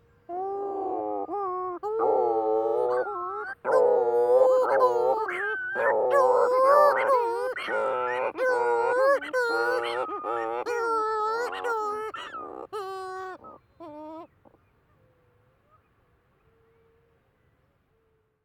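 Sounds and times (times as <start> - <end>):
Cape Verde Shearwater calling: 0.3 - 14.5.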